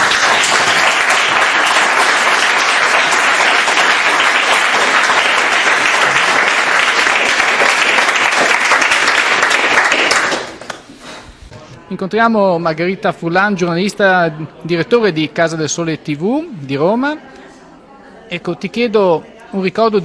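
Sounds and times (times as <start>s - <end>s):
audience applause: 0.0s - 10.9s
speech: 12.0s - 17.4s, 18.3s - 20.0s.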